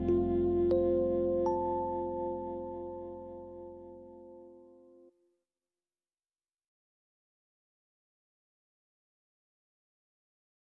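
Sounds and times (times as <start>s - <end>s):
tenor saxophone with articulation: 0.0s - 4.5s.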